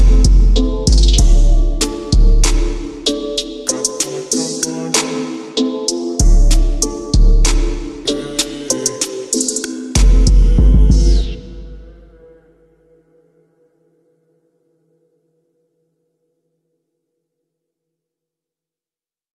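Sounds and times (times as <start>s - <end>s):
slowed reverb music: 0.0s - 13.0s.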